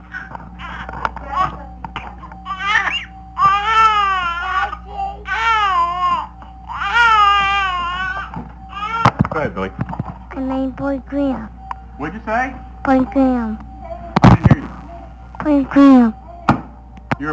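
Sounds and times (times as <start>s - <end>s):
electrical hum: 0.0s - 17.3s
two-month-old baby crying: 0.1s - 1.6s, 2.4s - 9.2s
speech: 10.7s - 13.7s, 15.4s - 16.2s.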